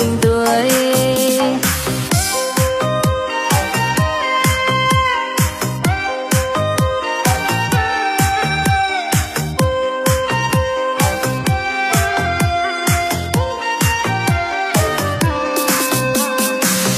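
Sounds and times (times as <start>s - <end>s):
addictive EDM parody remix with very strong bass: 0.0s - 16.9s.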